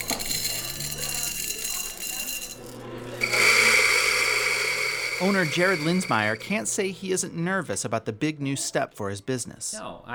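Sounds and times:
coffee grinder grinding beans: 0.0 - 6.8
speech: 5.2 - 10.1.

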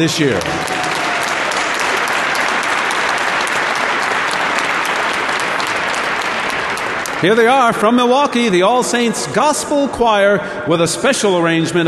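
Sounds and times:
speech: 0.0 - 0.7, 7.2 - 11.8
audience applause: 0.0 - 7.8.

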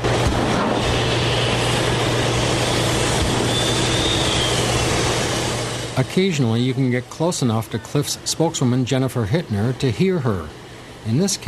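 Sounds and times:
heavy ore processing machinery rumbling and rattling: 0.0 - 6.3
faint high whistle: 2.6 - 5.0
speech: 6.0 - 11.4.

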